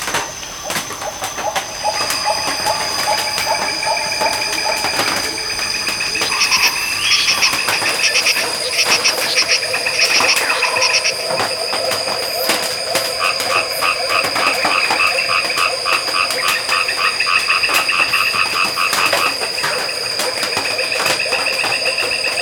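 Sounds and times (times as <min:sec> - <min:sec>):
tropical rainforest ambience: 0:00.0 - 0:22.4.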